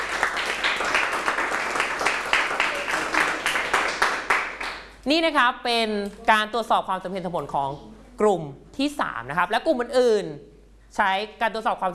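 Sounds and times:
classroom clapping: 0.0 - 5.0
speech: 5.0 - 11.9.

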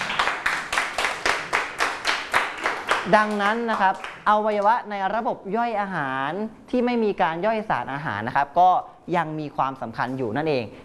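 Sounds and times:
classroom applause for a student: 0.0 - 4.2
speech: 3.1 - 10.8.

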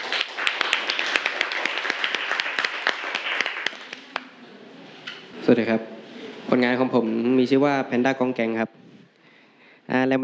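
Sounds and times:
applause from a group of people for a classmate: 0.0 - 4.4
speech: 5.5 - 5.9, 6.5 - 8.8.

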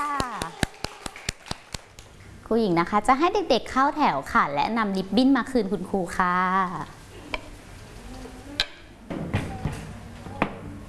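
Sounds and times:
children clapping: 0.0 - 2.1
speech: 2.5 - 7.0.

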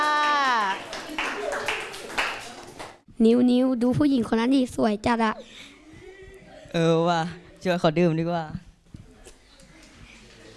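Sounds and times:
scattered clapping from a small group: 0.0 - 3.0
speech: 3.2 - 5.7, 6.7 - 8.6.

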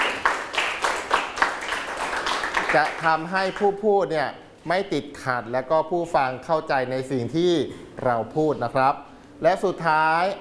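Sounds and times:
small audience applauding: 0.0 - 3.7
speech: 2.7 - 10.3.

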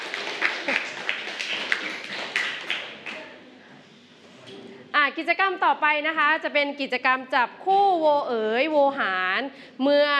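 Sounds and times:
applause: 0.0 - 3.4
speech: 5.2 - 10.1.

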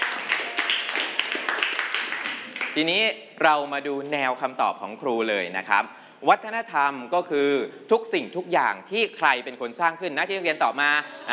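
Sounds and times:
students clapping hands: 0.0 - 2.8
speech: 2.8 - 11.3.

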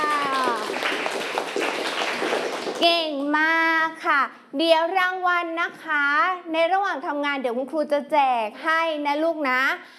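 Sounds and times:
children in a class clapping for themselves: 0.0 - 3.2
speech: 2.8 - 9.9.

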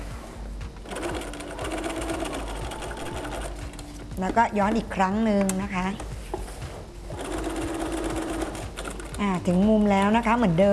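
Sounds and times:
sewing machine stitching fabric: 0.9 - 3.6, 7.2 - 9.5
speech: 4.2 - 6.2, 9.2 - 10.7.

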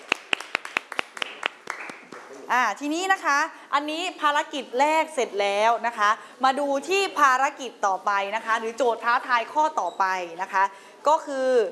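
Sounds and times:
handful of people in a classroom applauding the first group: 0.0 - 2.4
speech: 2.5 - 11.7.

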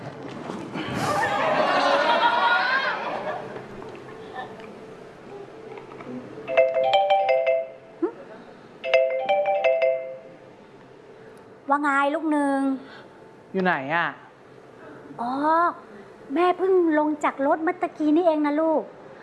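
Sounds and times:
laughter: 0.8 - 3.6
phone ringtone during an outgoing call: 6.5 - 7.8, 8.8 - 10.4
speech: 11.8 - 14.2, 15.2 - 19.0.

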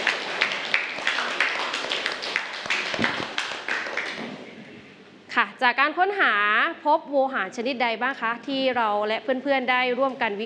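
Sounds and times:
students clapping: 0.0 - 4.4
speech: 5.6 - 10.4.

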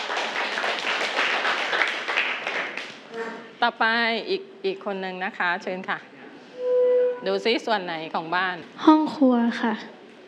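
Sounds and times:
children clapping for a classmate: 0.0 - 3.0
speech: 3.6 - 6.1, 7.2 - 10.0.

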